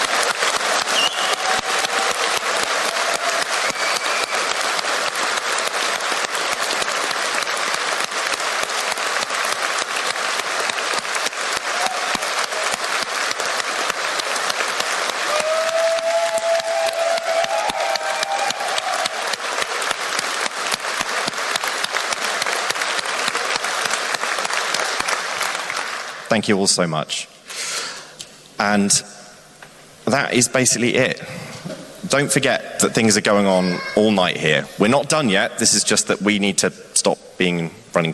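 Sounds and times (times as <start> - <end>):
audience applause: 0.0 - 26.3
faint whistle or cheer: 0.9 - 2.2, 3.0 - 4.5, 15.3 - 19.2
speech: 26.4 - 27.3, 28.6 - 29.2, 30.1 - 31.5, 32.1 - 38.1.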